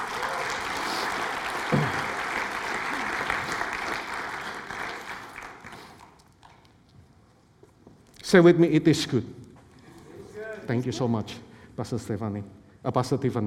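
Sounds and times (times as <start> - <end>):
audience applauding: 0.0 - 6.7
speech: 8.3 - 9.4, 10.7 - 13.4.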